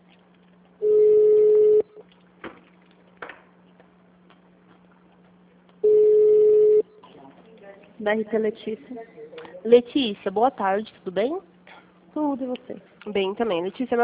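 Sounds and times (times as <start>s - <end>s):
low constant hum: 0.0s - 14.0s
ringing tone of a telephone call being transferred: 0.8s - 1.9s, 5.8s - 6.8s
speech: 8.0s - 11.5s, 12.2s - 14.0s.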